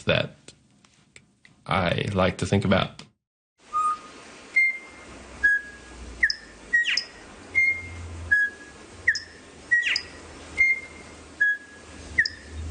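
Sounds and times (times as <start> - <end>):
speech: 0.0 - 0.4, 1.7 - 3.1
male songbird singing melodic intervals: 3.7 - 12.6.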